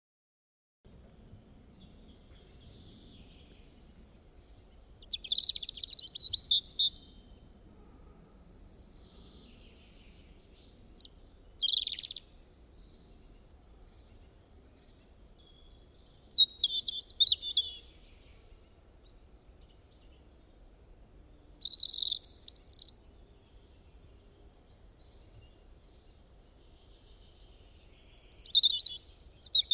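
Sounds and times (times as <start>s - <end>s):
bird chirping and trilling: 4.8s - 7.2s, 11.2s - 12.2s, 15.5s - 18.1s, 21.3s - 23.0s, 28.2s - 29.7s.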